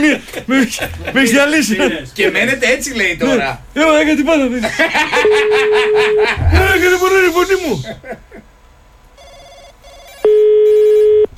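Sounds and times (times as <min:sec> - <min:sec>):
laughter: 0:00.0 - 0:02.0, 0:04.4 - 0:08.5
speech: 0:00.1 - 0:08.2
telephone electronic ring tone: 0:09.2 - 0:11.3.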